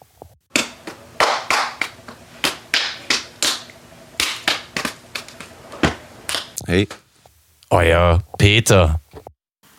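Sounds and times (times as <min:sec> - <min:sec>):
handshake routine of hands slapping together: 0:00.5 - 0:05.5, 0:06.3 - 0:06.6
speech: 0:06.7 - 0:07.0, 0:07.7 - 0:09.0.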